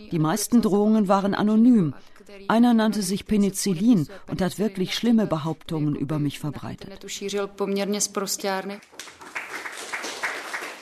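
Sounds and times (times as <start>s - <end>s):
speech: 0.1s - 9.4s
audience applause after debate: 8.8s - 10.8s.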